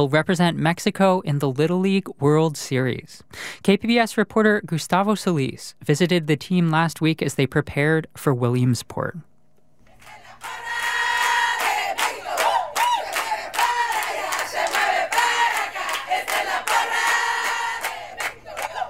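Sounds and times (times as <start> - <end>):
speech: 0.0 - 9.3
parents cheering and shouting at baseball game: 10.4 - 17.6.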